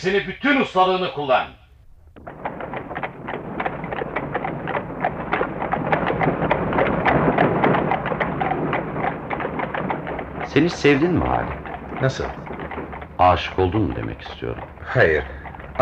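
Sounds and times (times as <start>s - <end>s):
speech: 0.0s - 1.6s, 10.6s - 12.4s, 13.2s - 15.8s
rumble of rolling carriage wheels: 0.0s - 15.8s
horse hooves clip-clopping pulling a carriage: 0.1s - 15.8s.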